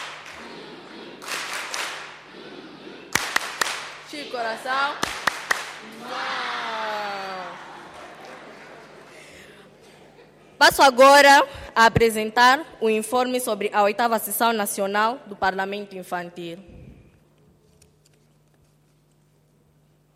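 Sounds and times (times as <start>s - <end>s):
audience applause: 3.1s - 3.9s, 5.0s - 9.6s
speech: 4.2s - 5.2s, 5.8s - 6.6s, 10.6s - 16.7s
laughter: 5.8s - 10.6s.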